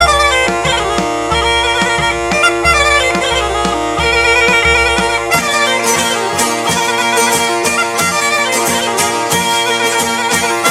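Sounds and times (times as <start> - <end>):
narodno folk melody: 0.0 - 10.6.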